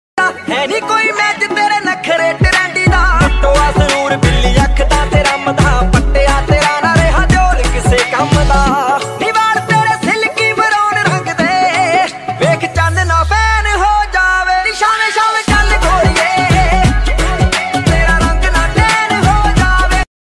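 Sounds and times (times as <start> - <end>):
Punjabi dance music ringtone: 0.2 - 20.0.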